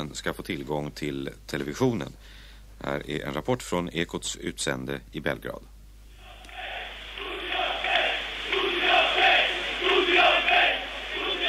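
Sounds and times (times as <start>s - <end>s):
speech: 0.1s - 5.7s
crowd of demonstrating students chanting a slogan: 6.2s - 11.4s.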